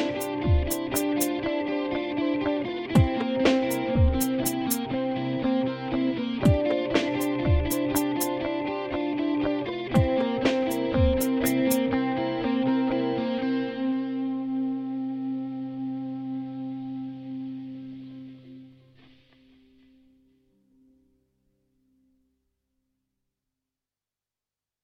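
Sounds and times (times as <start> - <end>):
improvised music in 7 4 time: 0.0 - 18.6.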